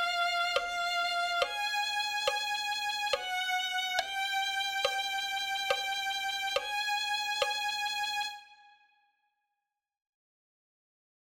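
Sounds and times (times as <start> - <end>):
violin: 0.0 - 9.1.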